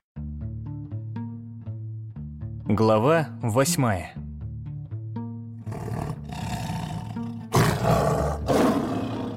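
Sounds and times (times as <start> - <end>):
speech: 2.7 - 4.2
big cat roaring: 5.7 - 9.3.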